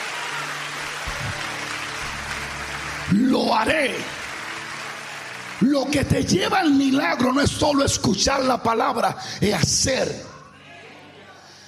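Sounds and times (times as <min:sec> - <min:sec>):
loud applause from audience: 0:00.0 - 0:07.8
speech: 0:03.1 - 0:04.2, 0:05.6 - 0:10.3.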